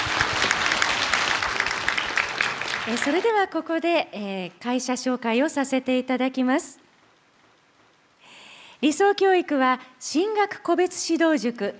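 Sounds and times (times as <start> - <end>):
crowd applause: 0.0 - 3.4
speech: 2.9 - 6.8, 8.8 - 11.7.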